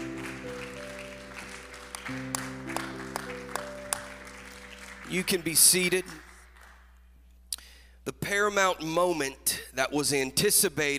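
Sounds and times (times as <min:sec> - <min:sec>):
audience clapping: 0:00.0 - 0:07.1
sustained organ or keyboard chords: 0:00.0 - 0:07.2
speech: 0:02.1 - 0:02.6, 0:05.1 - 0:06.3, 0:08.3 - 0:10.9.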